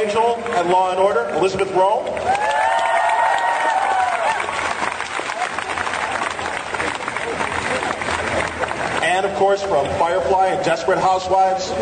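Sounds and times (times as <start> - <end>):
speech: 0.1 - 2.5, 9.4 - 11.8
audience applause: 2.0 - 9.5.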